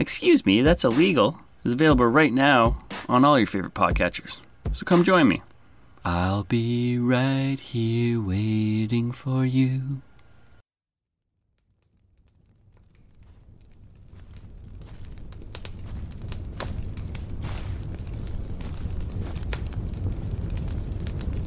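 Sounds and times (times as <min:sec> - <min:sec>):
speech: 0:00.0 - 0:10.1
crackling fire: 0:00.0 - 0:10.6, 0:11.4 - 0:21.4.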